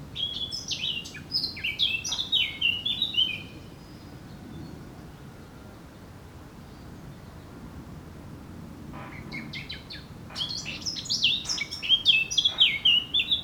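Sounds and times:
Eurasian blackcap singing: 0.2 - 3.5, 9.6 - 13.4.

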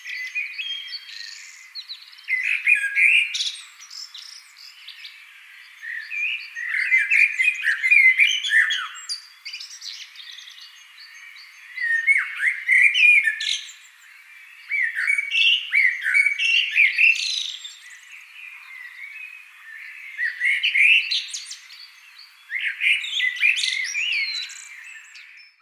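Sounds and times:
common blackbird singing: 0.0 - 25.6.

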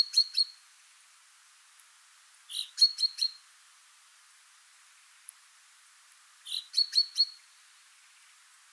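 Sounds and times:
common chaffinch Fringilla coelebs calling: 0.0 - 0.6, 2.5 - 3.4, 6.4 - 8.6.

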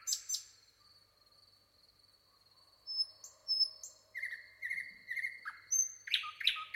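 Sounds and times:
common nightingale calling: 4.2 - 6.7.

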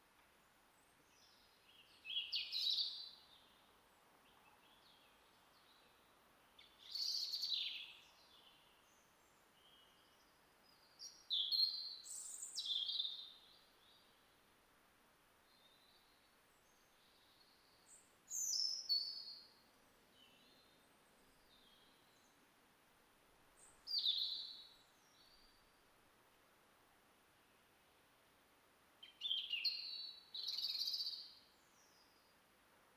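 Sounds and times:
European robin singing: 1.1 - 3.6, 6.6 - 14.1, 15.5 - 22.4, 23.6 - 25.6, 29.0 - 32.2.

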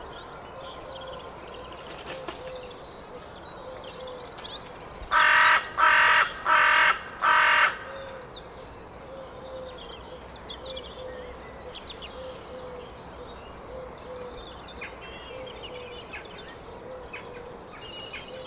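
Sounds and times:
carrion crow Corvus corone giving loud harsh even caws: 5.1 - 8.2.

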